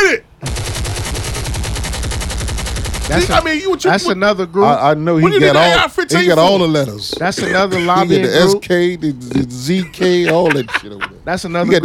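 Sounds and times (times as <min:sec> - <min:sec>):
automatic gunfire from a Glock pistol fitted with a switch: 0:00.4 - 0:03.6
speech: 0:03.1 - 0:11.8
laughter: 0:05.9 - 0:08.6, 0:09.3 - 0:11.8.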